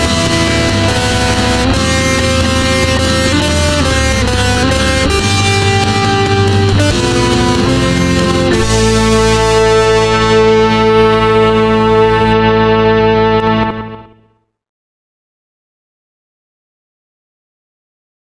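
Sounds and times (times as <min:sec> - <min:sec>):
instrumental music: 0:00.0 - 0:14.4.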